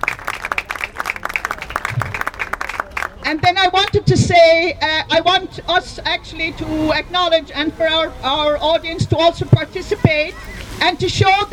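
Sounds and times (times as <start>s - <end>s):
audience clapping at a campaign event in Geneva: 0.0s - 4.0s
speech: 3.3s - 11.5s.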